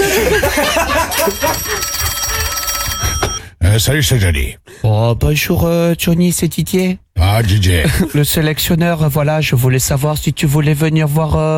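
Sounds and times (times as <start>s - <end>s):
laughter: 0.0s - 3.3s
telephone ringing with a jangling metallic bell trill: 0.9s - 3.6s
speech: 3.8s - 11.5s.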